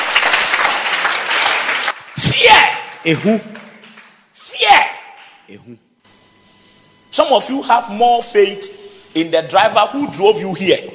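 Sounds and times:
audience clapping: 0.0 - 4.4
speech: 2.2 - 3.6, 5.5 - 5.9, 7.2 - 10.9.

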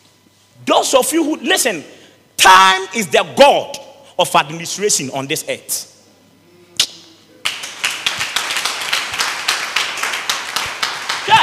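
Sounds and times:
speech: 0.6 - 5.9
audience clapping: 7.4 - 11.4.

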